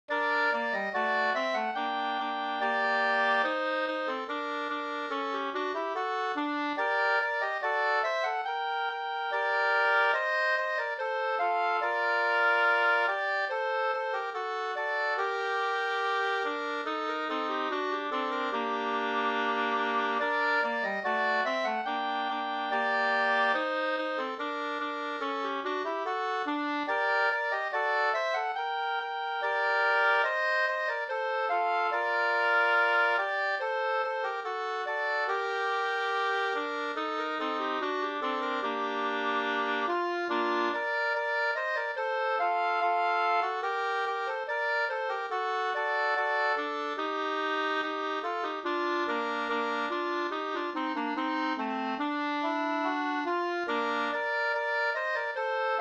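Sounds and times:
folk walking tune: 0.1s - 55.7s.

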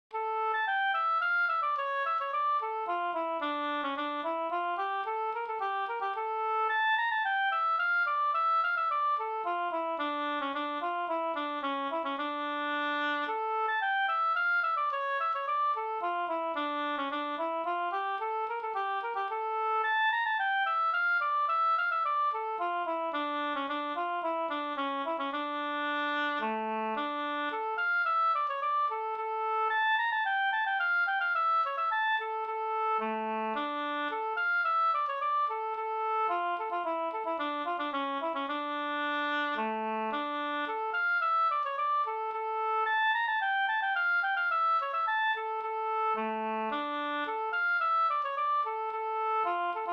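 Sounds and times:
polska folk dance tune: 0.1s - 49.9s.

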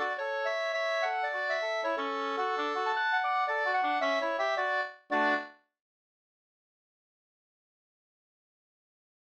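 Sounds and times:
two-part polska dance tune: 0.0s - 5.6s.

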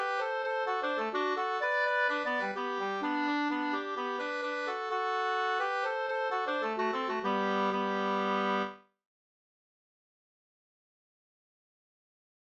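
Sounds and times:
polska folk tune: 0.0s - 8.9s.

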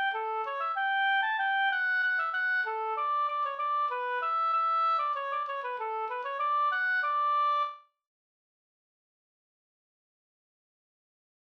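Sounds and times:
polka music: 0.0s - 7.8s.

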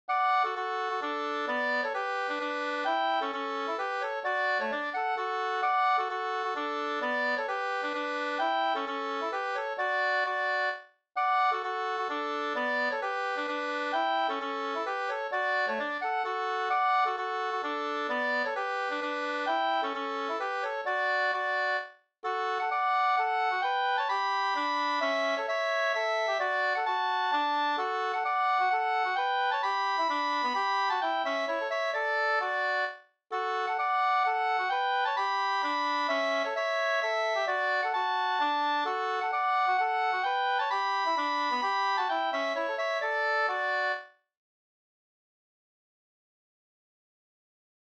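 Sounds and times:
hambo polska dance tune: 0.1s - 44.1s.

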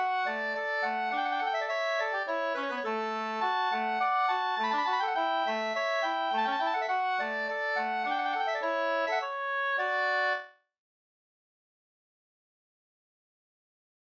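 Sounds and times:
two-part slangpolska: 0.0s - 10.5s.

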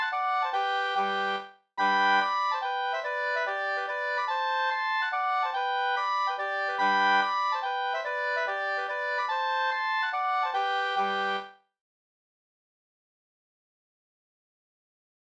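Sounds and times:
langdans folk dance music: 0.0s - 11.5s.

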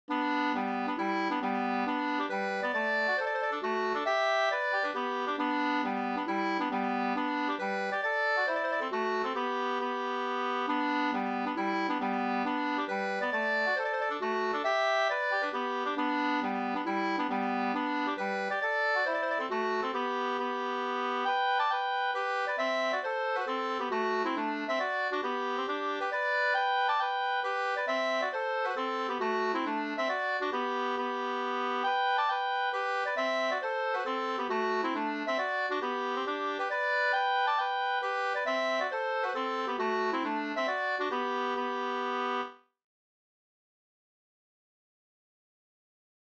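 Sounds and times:
hambo polska folk dance tune: 0.1s - 42.6s.

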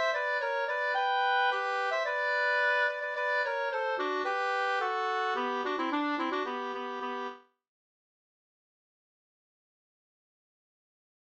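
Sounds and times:
polka music: 0.0s - 7.4s.

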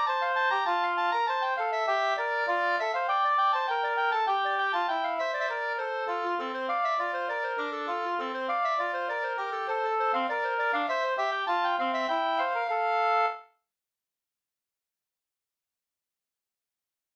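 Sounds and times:
two-part slangpolska: 0.0s - 13.4s.

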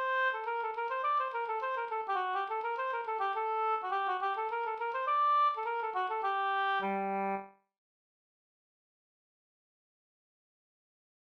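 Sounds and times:
slangpolska folk dance tune: 0.0s - 7.4s.

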